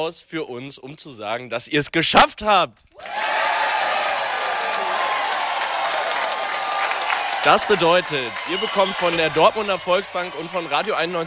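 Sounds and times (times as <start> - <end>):
speech: 0.0 - 3.4, 7.4 - 11.2
crowd cheering and clapping: 3.0 - 11.2.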